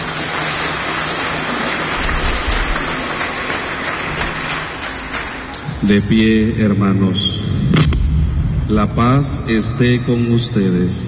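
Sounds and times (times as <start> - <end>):
audience clapping: 0.0 - 5.9
speech: 5.8 - 7.8, 8.7 - 11.0.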